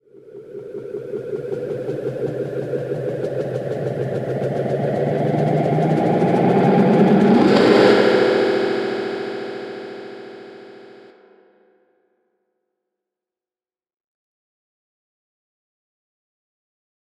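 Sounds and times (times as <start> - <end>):
build-up: 0.5 - 11.1.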